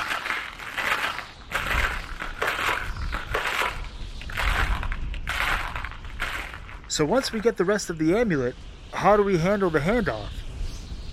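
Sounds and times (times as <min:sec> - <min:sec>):
footsteps crunching through packed snow: 0:00.0 - 0:07.5
speech: 0:07.0 - 0:10.4.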